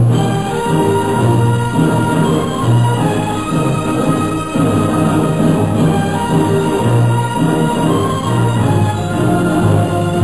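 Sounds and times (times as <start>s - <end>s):
tune: 0.0s - 10.2s.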